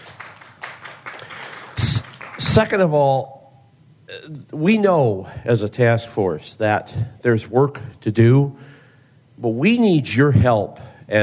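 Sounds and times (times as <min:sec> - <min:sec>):
audience applause: 0:00.0 - 0:02.7
speech: 0:02.5 - 0:03.4, 0:04.1 - 0:08.8, 0:09.4 - 0:11.2.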